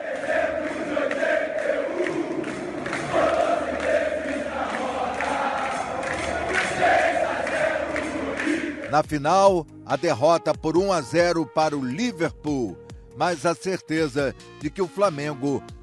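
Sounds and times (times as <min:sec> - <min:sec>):
football crowd chanting happily: 0:00.0 - 0:09.0
speech: 0:08.9 - 0:15.8.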